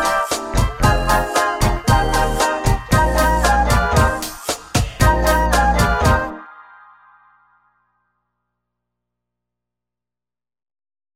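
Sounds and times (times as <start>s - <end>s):
quirky Christmas tune: 0.0s - 7.1s.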